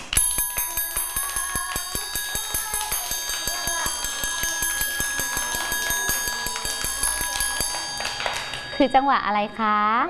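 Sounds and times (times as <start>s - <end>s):
teacher tapping a fast rhythm on a ringing metal instrument: 0.0s - 9.2s
speech: 8.8s - 10.0s.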